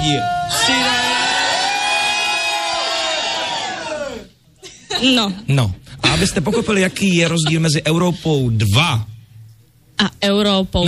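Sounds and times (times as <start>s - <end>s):
speech: 0.0s - 1.0s, 5.0s - 9.1s, 10.0s - 10.8s
studio audience shouting together: 0.0s - 4.3s.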